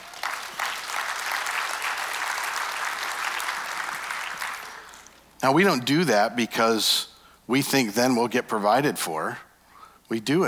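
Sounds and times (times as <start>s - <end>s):
large crowd clapping and cheering: 0.0s - 5.3s
speech: 5.4s - 9.4s, 10.1s - 10.4s.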